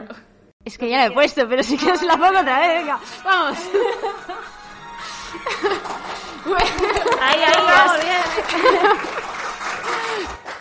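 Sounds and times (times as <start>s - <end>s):
speech: 0.1s - 4.6s, 5.3s - 9.2s, 10.1s - 10.4s
laughter: 3.4s - 10.4s
live audience applause: 5.4s - 10.5s.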